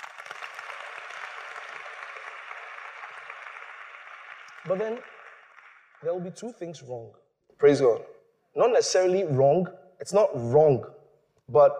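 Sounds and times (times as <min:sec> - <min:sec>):
audience clapping: 0:00.0 - 0:06.6
speech: 0:04.6 - 0:05.2, 0:06.0 - 0:11.7.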